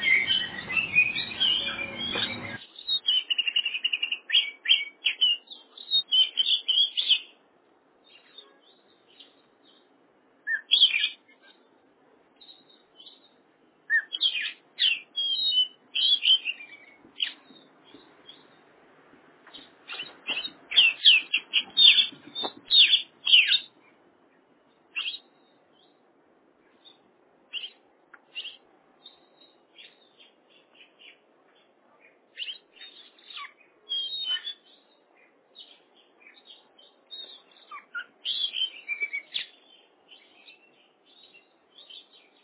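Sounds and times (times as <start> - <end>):
Oriental magpie-robin singing: 0.0 - 7.3, 10.5 - 11.2, 13.9 - 17.7, 19.6 - 23.7, 24.9 - 25.9, 32.4 - 34.9, 35.6 - 42.4.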